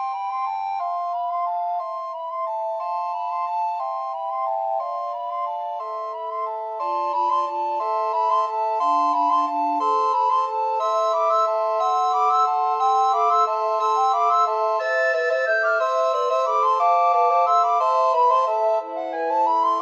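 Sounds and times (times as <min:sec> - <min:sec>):
recorder quartet playing a Christmas carol: 0:00.2 - 0:19.8.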